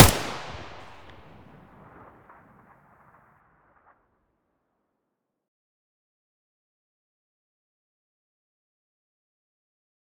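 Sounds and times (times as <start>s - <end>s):
AK-74U muzzle firing: 0.0s - 1.5s.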